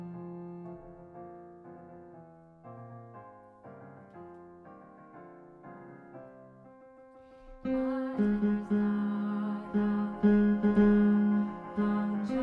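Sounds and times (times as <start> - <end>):
tenor singing: 7.6 - 12.4.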